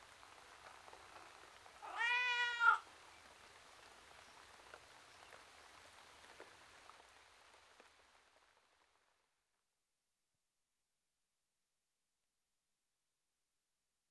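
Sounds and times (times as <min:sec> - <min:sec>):
domestic tom cat meowing outside: 0:01.8 - 0:02.8.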